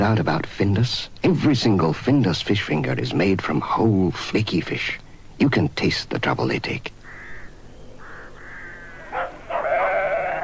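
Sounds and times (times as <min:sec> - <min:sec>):
speech: 0:00.0 - 0:07.0
low steady hiss: 0:00.0 - 0:10.4
lambs bleating: 0:09.1 - 0:10.4.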